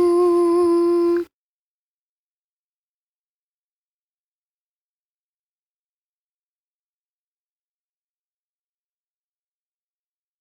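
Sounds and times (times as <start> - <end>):
nasal overtone singing on N with optimized resonance space: 0.0 - 1.3.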